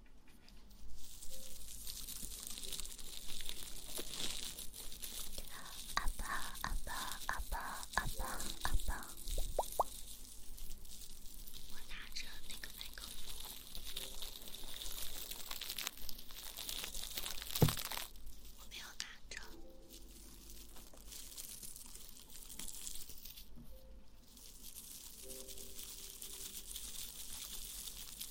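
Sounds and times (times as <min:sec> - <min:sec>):
steady hiss of rustling: 0:00.7 - 0:28.2
soft kissing sounds and mouth noises: 0:08.0 - 0:09.9
sharp pop: 0:17.6 - 0:17.9.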